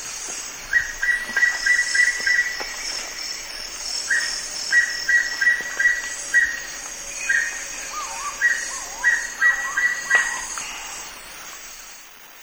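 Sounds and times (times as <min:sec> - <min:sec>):
wing-barred piprites calls: 0:00.0 - 0:11.6.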